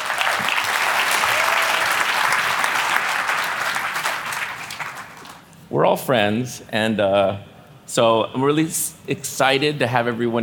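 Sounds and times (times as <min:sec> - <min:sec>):
audience applause: 0:00.0 - 0:05.4
speech: 0:05.7 - 0:10.4.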